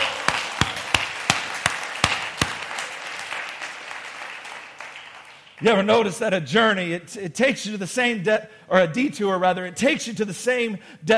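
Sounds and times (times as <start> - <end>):
praise claps in unison: 0.0 - 5.6
scattered applause: 0.0 - 5.7
speech: 5.6 - 11.1.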